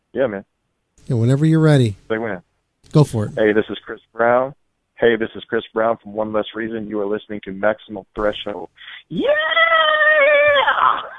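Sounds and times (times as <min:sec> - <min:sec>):
speech: 0:00.1 - 0:11.1
woman screaming sound effect: 0:09.1 - 0:11.1.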